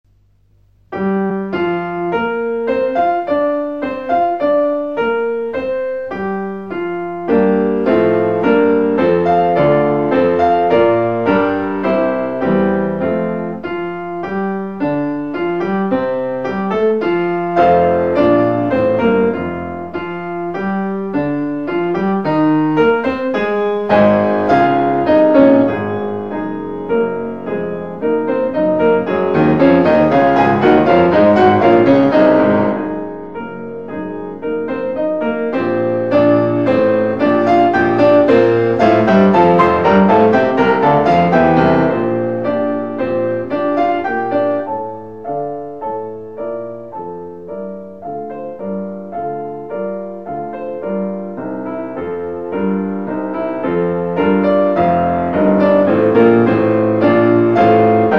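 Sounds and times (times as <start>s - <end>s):
piano piece: 0.1s - 58.1s.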